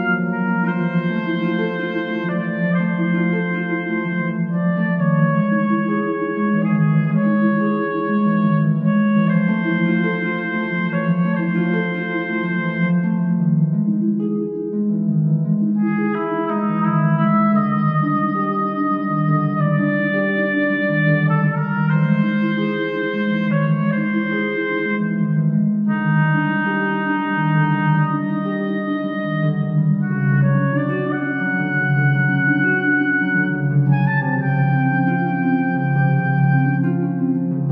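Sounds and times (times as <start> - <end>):
oboe: 0.0 - 14.8, 15.5 - 37.6
harp: 0.0 - 37.6.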